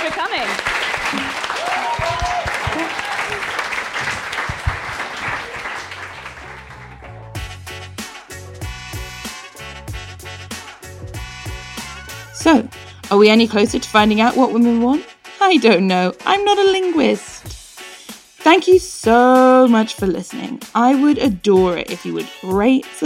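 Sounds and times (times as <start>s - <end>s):
audience applause: 0.0s - 7.4s
speech: 13.2s - 17.3s, 18.5s - 23.0s.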